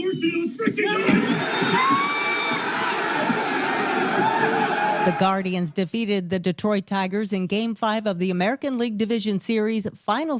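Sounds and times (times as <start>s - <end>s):
speech: 0.2s - 1.5s, 5.0s - 10.3s
baseball crowd cheering: 0.2s - 5.4s.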